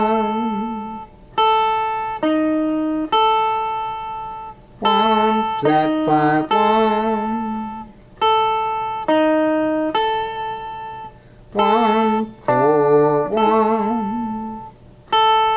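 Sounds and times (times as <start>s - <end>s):
ear training musical interval tones above and below octave: 0.0s - 15.5s.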